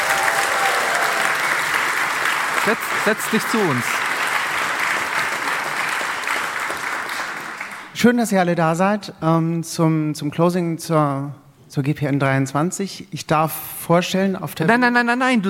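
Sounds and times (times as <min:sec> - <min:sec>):
audience applause: 0:00.0 - 0:08.0
speech: 0:02.6 - 0:04.0, 0:08.0 - 0:15.4.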